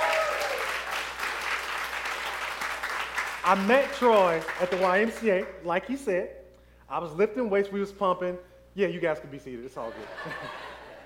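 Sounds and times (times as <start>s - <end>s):
audience applause: 0.0s - 5.2s
speech: 3.4s - 10.7s
laughter: 9.8s - 11.0s.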